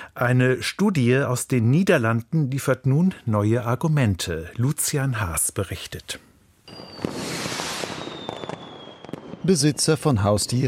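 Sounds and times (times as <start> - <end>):
speech: 0.2 - 7.2, 9.5 - 10.6
New Year's Eve fireworks bangs: 6.7 - 10.6.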